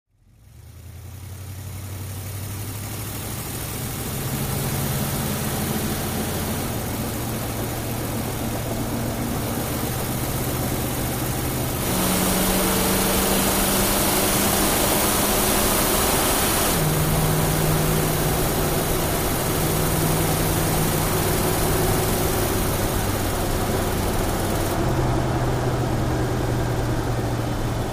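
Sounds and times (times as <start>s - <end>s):
Jeep Wagoneer on board aggressive driving: 1.0s - 27.9s.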